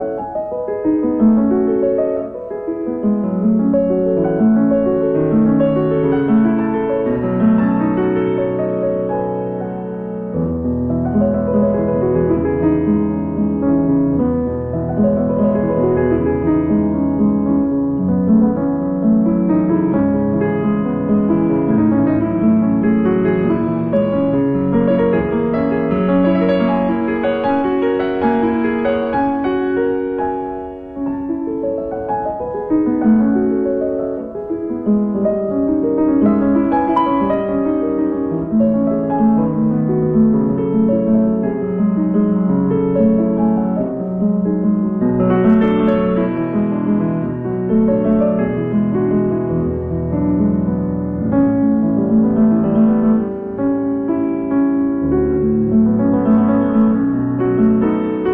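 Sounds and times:
piano piece in E major: 0:00.0 - 0:58.3.

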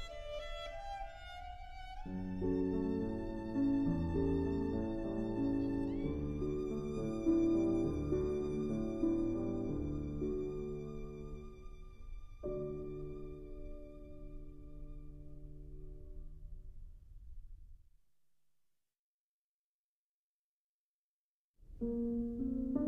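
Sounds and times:
violin: 0:00.0 - 0:15.8
piano: 0:00.0 - 0:17.7, 0:21.7 - 0:22.8.

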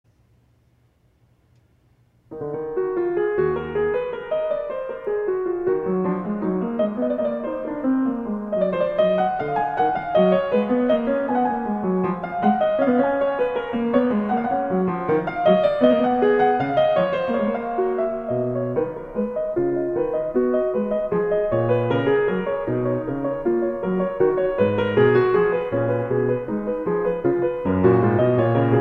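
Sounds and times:
keyboard prelude and fugue in D sharp minor: 0:02.3 - 0:28.7.

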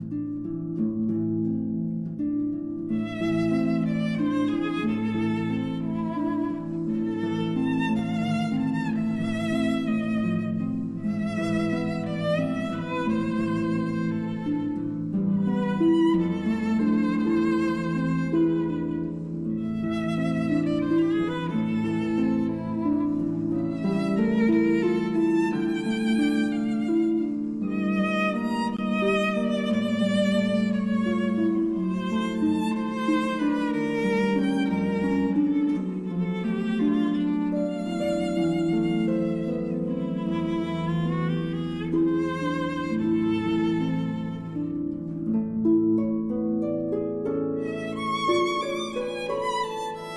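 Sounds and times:
berceuse for violin and harp: 0:00.0 - 0:50.1.

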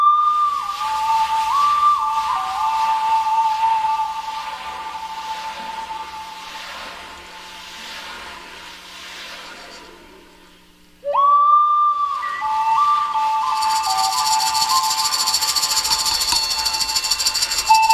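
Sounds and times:
Native American flute playing: 0:00.0 - 0:06.4, 0:11.0 - 0:17.9.

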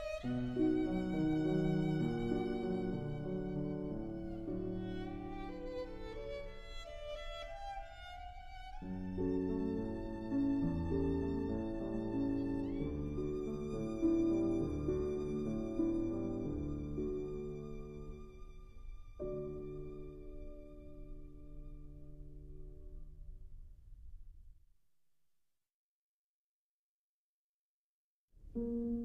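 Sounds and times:
violin: 0:00.0 - 0:22.8
piano: 0:00.0 - 0:24.5, 0:28.4 - 0:29.0.

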